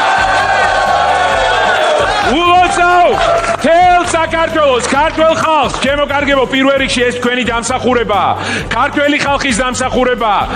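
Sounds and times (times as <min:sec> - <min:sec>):
crowd of party members cheering at a party office: 0:00.0 - 0:05.7
speech: 0:02.3 - 0:10.5.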